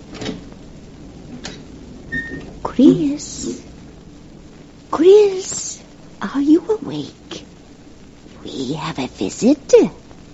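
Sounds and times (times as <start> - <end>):
door squeak: 2.1 - 2.6
bedroom door opened quietly: 2.1 - 3.6
speech: 2.8 - 3.7, 4.9 - 5.6, 6.2 - 7.2, 8.4 - 10.0.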